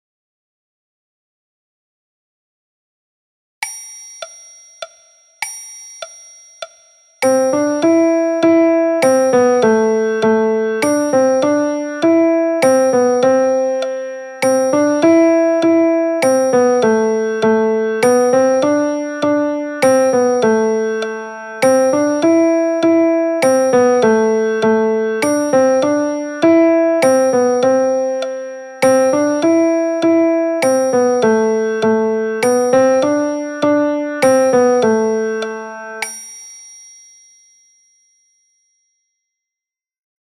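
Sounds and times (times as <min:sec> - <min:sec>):
piano music: 0:07.2 - 0:36.1.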